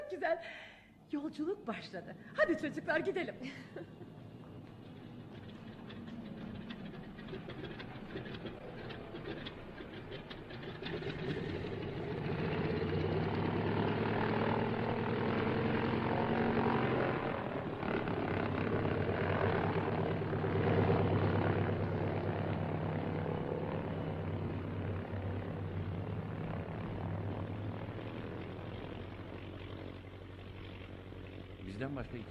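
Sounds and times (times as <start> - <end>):
speech: 0.1 - 4.0, 31.8 - 32.2
propeller airplane engine droning in flight to Rabat: 2.2 - 32.2.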